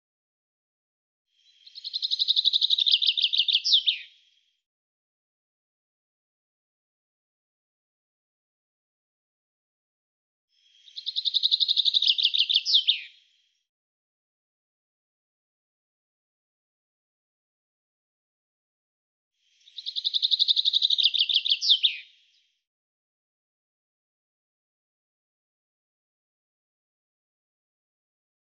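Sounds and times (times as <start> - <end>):
bird song in rapid high trilled phrases: 1.4 - 4.5, 10.6 - 13.4, 19.4 - 22.6.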